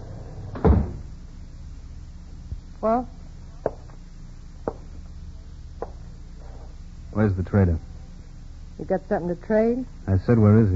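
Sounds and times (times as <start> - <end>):
wooden front door of a log cabin swinging open: 0.5 - 1.0
speech: 2.8 - 3.2, 7.2 - 7.9, 8.8 - 10.7.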